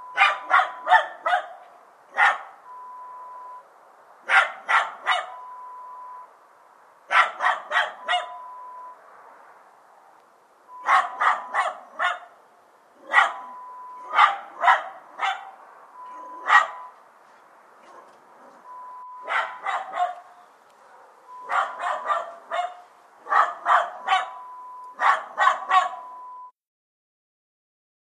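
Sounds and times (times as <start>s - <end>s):
small dog barking: 0.1s - 2.6s, 4.2s - 5.4s, 7.1s - 8.5s, 10.8s - 12.4s, 13.0s - 16.9s, 17.8s - 26.2s.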